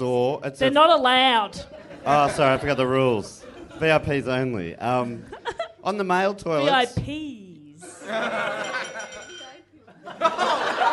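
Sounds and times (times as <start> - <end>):
speech: 0.0 - 7.4, 8.1 - 8.7
group of people chatting and laughing: 1.2 - 7.0, 7.7 - 10.9
drinking glass knocked, clinking: 8.5 - 9.7.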